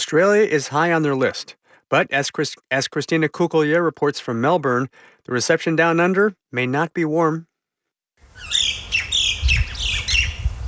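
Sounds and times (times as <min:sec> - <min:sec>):
speech: 0:00.1 - 0:07.5
native Australian birds calling in fields: 0:08.4 - 0:10.5.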